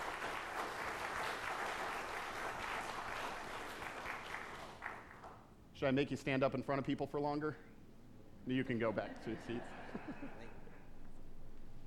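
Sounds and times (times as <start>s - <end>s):
audience applause: 0.0s - 5.3s
speech: 5.8s - 7.7s, 8.4s - 10.6s
laughter: 8.8s - 11.0s.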